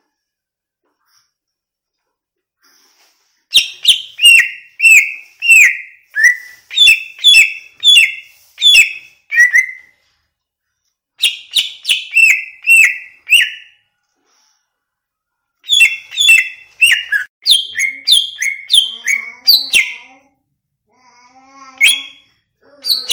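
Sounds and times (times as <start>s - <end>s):
greater green leafbird whistling song: 3.5s - 10.0s, 11.2s - 13.8s, 15.6s - 20.2s, 21.8s - 23.1s.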